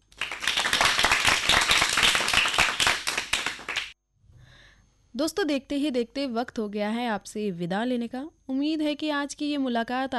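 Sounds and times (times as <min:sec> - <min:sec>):
audience applause: 0:00.2 - 0:03.9
speech: 0:05.2 - 0:10.1.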